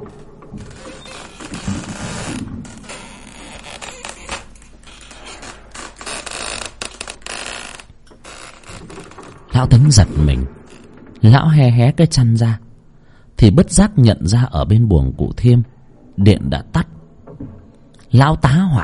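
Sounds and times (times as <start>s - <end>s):
wooden doors rattling and creaking in wind: 0.0s - 11.4s, 17.2s - 17.8s
speech: 9.6s - 10.6s, 11.2s - 12.6s, 13.4s - 16.9s, 18.1s - 18.8s.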